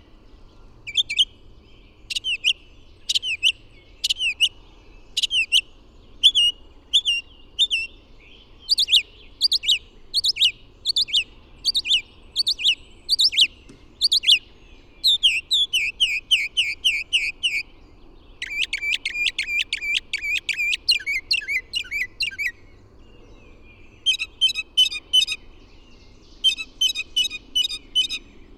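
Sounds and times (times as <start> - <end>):
bird song of loud high ringing notes: 0.4 - 28.5.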